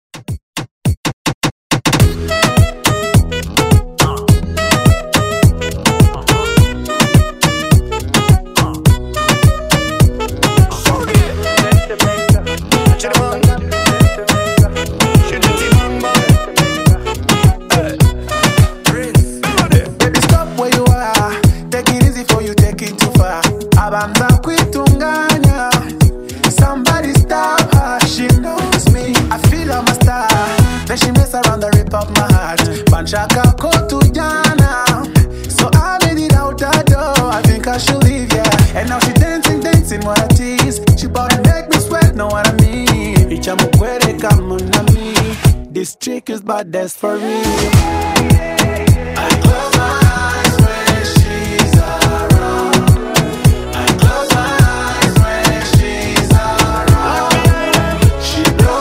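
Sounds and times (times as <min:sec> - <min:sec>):
Moombahton beat on Redrum drum machine: 0:00.1 - 0:45.7, 0:47.0 - 0:58.7.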